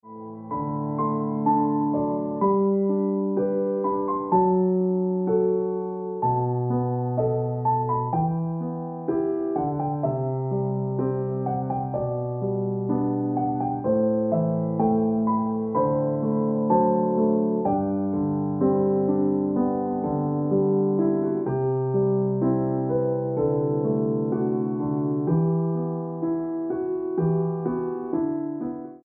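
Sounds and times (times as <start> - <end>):
piano music: 0.0 - 29.0.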